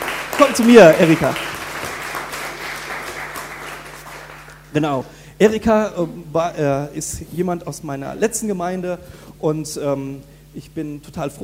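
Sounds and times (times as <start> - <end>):
congregation applause during a church service at Easter in Miltenberg, Germany: 0.0 - 4.8
speech: 0.4 - 1.4, 4.7 - 11.4.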